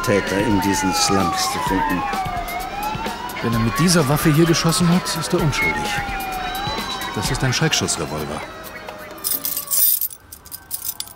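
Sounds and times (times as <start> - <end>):
speech: 0.0 - 2.4, 3.4 - 6.3, 7.2 - 8.7
bunch of keys jangling: 9.1 - 11.1
rusty iron gate in a backyard wall being unlocked: 9.2 - 11.1.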